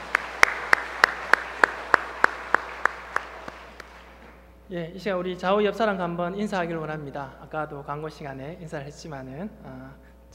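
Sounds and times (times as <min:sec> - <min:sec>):
audience applause: 0:00.0 - 0:04.4
speech: 0:04.7 - 0:10.3.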